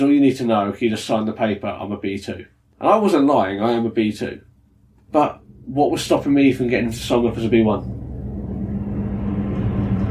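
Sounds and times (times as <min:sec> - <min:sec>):
speech: 0:00.0 - 0:04.5, 0:05.1 - 0:08.0
large train rumbling past: 0:05.2 - 0:10.0.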